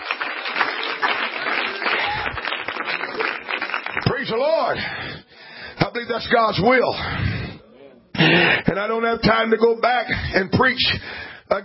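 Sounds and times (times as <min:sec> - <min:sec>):
audience clapping hands: 0:00.0 - 0:04.8
speech: 0:04.3 - 0:05.2, 0:05.9 - 0:07.4, 0:08.2 - 0:11.6.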